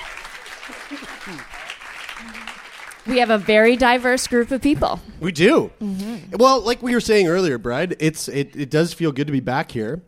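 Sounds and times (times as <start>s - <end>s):
audience round of applause: 0.0s - 4.7s
speech: 0.9s - 1.6s, 2.2s - 10.0s.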